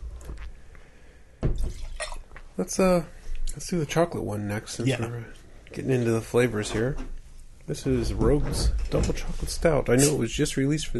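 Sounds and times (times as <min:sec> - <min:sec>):
water rinsing a drinking glass: 0:01.6 - 0:02.4
speech: 0:02.6 - 0:10.9.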